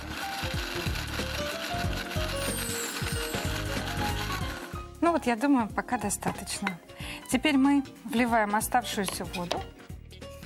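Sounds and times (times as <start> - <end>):
kitchen grinder mincing currants: 0.0 - 4.6
speech: 5.0 - 9.8.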